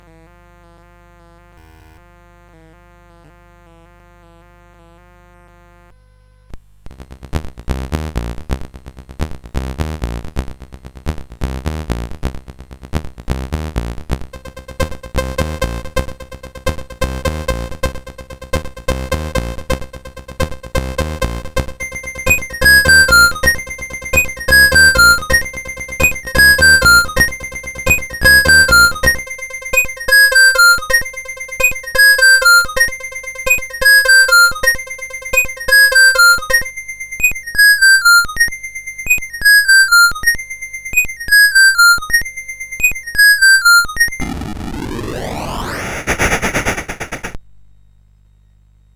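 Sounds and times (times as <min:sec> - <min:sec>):
beat: 0:14.3 - 0:38.3, 0:39.1 - 0:47.4.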